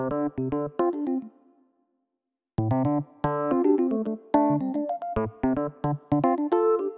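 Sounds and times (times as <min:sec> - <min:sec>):
electric piano loop: 0:00.2 - 0:01.3, 0:02.9 - 0:06.9.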